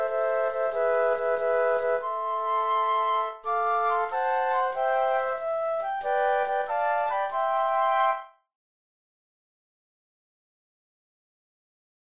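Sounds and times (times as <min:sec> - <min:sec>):
flute trio playing: 0:00.0 - 0:08.4.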